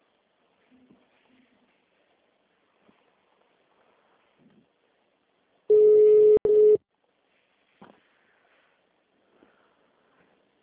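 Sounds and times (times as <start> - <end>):
automated phone menu tone: 5.7 - 6.8.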